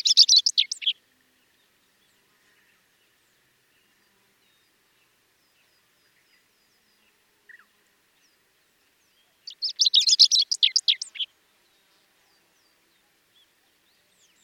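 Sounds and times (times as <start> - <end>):
chestnut-eared bunting calling: 0.0 - 1.0, 9.2 - 11.3.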